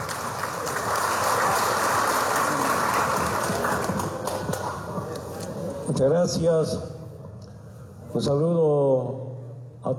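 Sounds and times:
applause: 0:00.0 - 0:05.3
speech: 0:06.0 - 0:06.9, 0:08.1 - 0:09.3.

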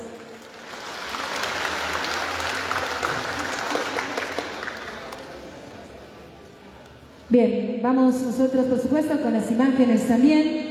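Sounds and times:
audience applause: 0:00.2 - 0:06.1
speech: 0:07.3 - 0:10.6.

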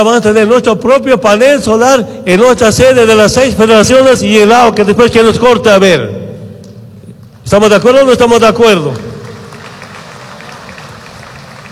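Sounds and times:
speech: 0:00.0 - 0:06.2, 0:07.5 - 0:09.1
audience applause: 0:09.0 - 0:11.7.

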